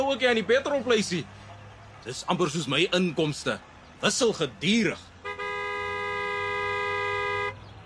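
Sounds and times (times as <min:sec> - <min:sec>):
speech: 0:00.1 - 0:01.4, 0:02.0 - 0:05.1
car horn honking at a petrol station: 0:05.2 - 0:07.6.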